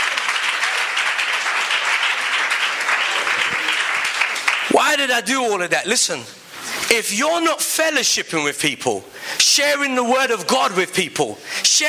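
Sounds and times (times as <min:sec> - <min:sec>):
audience applause: 0:00.0 - 0:04.8
speech: 0:04.8 - 0:11.8.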